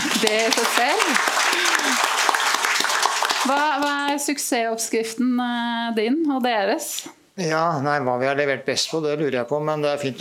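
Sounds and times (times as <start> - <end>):
laughter: 0.0 - 2.4
audience applause: 0.0 - 4.3
speech: 0.2 - 2.1, 3.4 - 10.1.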